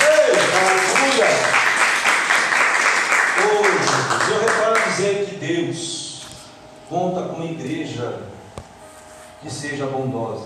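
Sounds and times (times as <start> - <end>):
audience applause: 0.0 - 4.9
speech: 6.9 - 8.3, 9.4 - 10.4.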